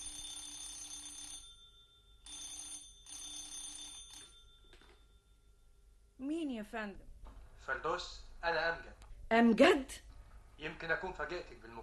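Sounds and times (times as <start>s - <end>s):
telephone bell ringing: 0.0s - 5.6s
speech: 6.2s - 7.1s, 7.7s - 11.8s.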